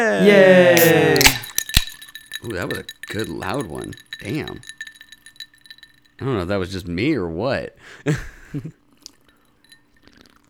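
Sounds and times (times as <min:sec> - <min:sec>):
speech: 0:00.0 - 0:01.1, 0:02.5 - 0:04.8, 0:06.2 - 0:08.8
glass with leftover liquor rattled, clinking and sloshing: 0:00.8 - 0:06.5, 0:09.0 - 0:10.4.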